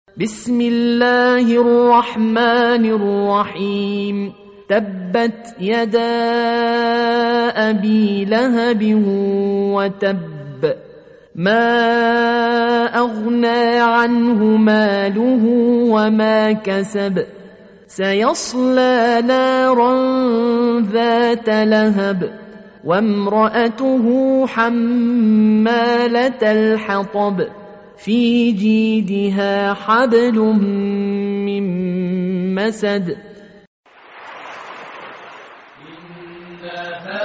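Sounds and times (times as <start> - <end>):
Quran recitation: 0.1 - 33.7, 35.6 - 37.2.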